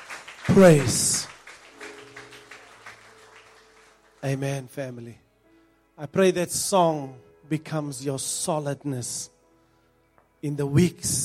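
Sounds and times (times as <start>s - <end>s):
church congregation clapping a clap offering: 0.0s - 4.8s
speech: 0.5s - 1.3s, 4.2s - 5.2s, 6.0s - 9.4s, 10.4s - 11.2s.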